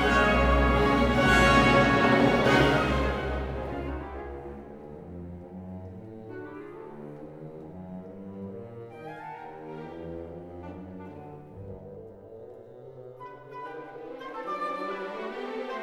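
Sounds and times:
orchestra playing an allegretto: 0.0s - 5.2s.

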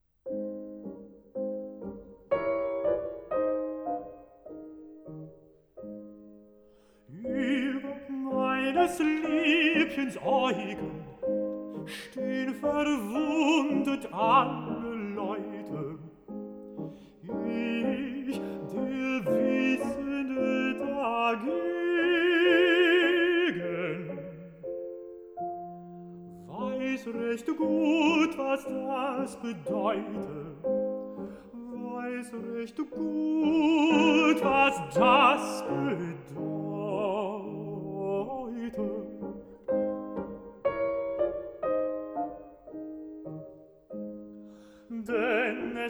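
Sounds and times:
piano: 0.0s - 45.8s
person singing: 7.1s - 24.8s, 26.4s - 40.0s, 44.8s - 45.8s.

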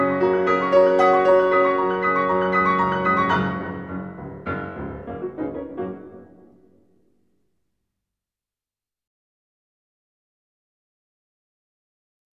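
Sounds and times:
piano etude in G flat major: 0.0s - 7.2s.

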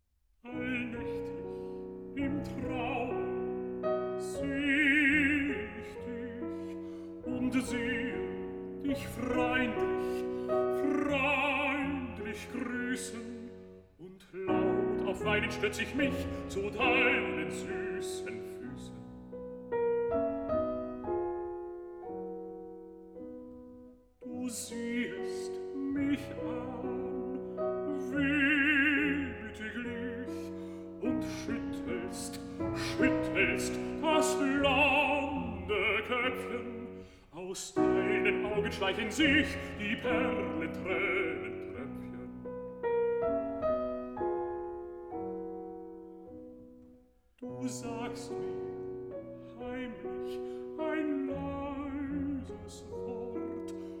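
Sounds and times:
piano: 0.0s - 53.9s
person singing a song cycle: 0.4s - 19.1s, 24.2s - 42.4s, 49.5s - 53.9s.

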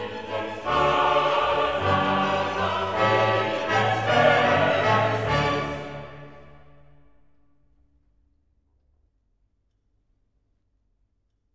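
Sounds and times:
soloists, chorus and orchestra performing a requiem Sanctus: 0.0s - 7.3s.

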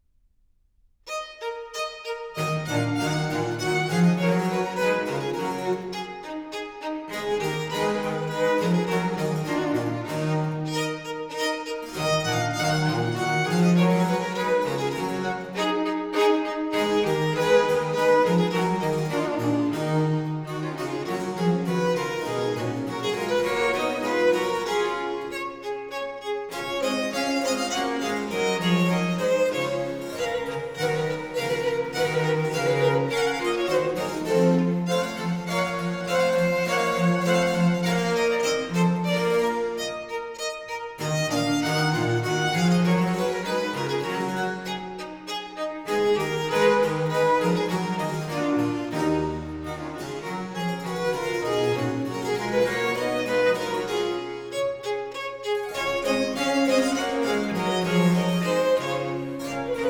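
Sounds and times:
baroque trio sonata gavotte allegro in E minor: 1.1s - 59.8s.

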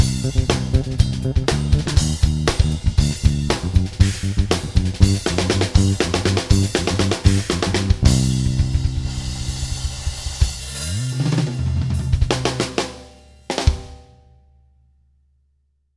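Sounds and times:
bass line: 0.0s - 10.6s
drums: 0.0s - 14.4s.

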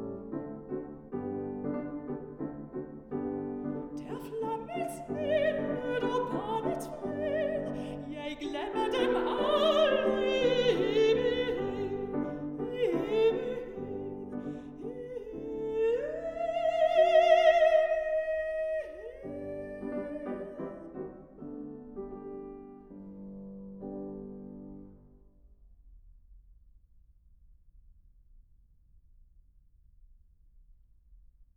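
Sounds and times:
piano: 0.0s - 25.7s
voice: 4.0s - 20.7s.

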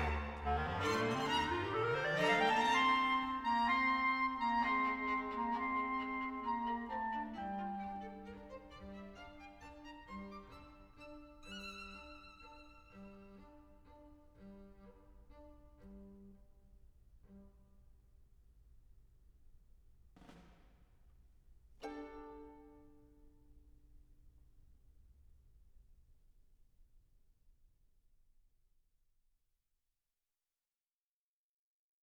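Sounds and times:
small orchestra playing an allegretto: 0.0s - 15.4s.

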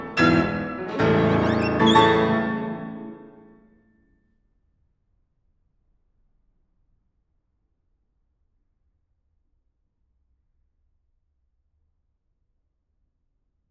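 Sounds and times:
violin: 0.0s - 3.5s
piano: 0.0s - 3.6s.

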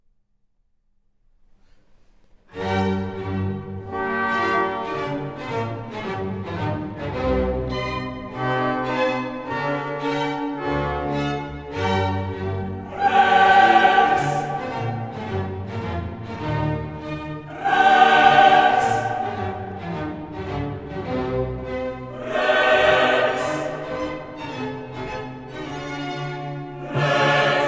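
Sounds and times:
requiem orchestra playing: 3.0s - 27.6s
requiem chorus singing: 12.2s - 25.2s, 26.6s - 27.6s
requiem soloists singing: 12.7s - 15.6s, 17.4s - 20.3s, 22.0s - 24.6s, 26.7s - 27.6s.

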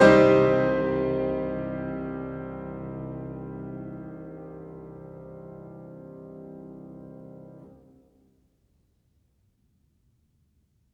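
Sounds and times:
piano prelude in C minor: 0.0s - 8.2s.

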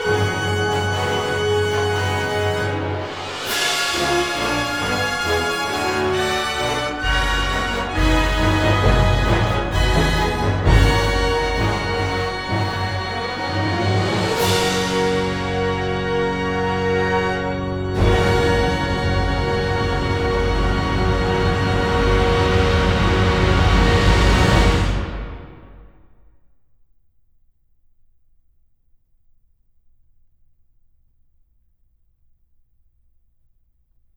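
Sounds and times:
film score fanfare: 0.0s - 26.1s.

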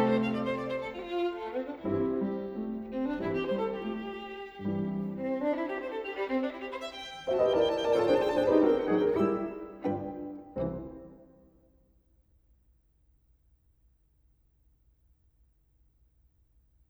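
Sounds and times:
violin: 0.0s - 11.4s
piano: 0.0s - 11.6s.

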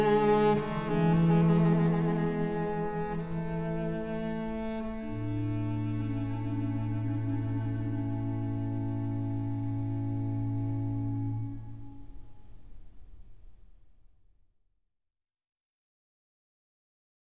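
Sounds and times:
cello concerto in D: 0.0s - 13.2s.

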